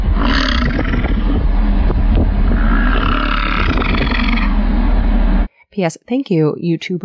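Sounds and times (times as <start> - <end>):
male bison grunting: 0.0 - 5.2
speech: 5.8 - 7.0.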